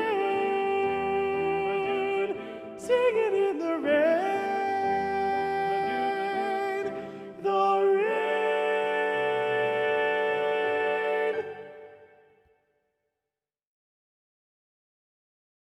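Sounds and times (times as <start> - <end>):
alto voice: 0.0 - 12.2.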